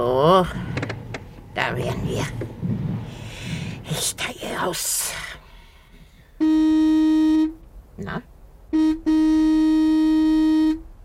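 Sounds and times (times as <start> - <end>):
speech: 0.3 - 0.7, 1.6 - 2.6, 3.9 - 5.4, 8.0 - 8.3
car horn honking: 6.4 - 7.6, 8.7 - 11.0.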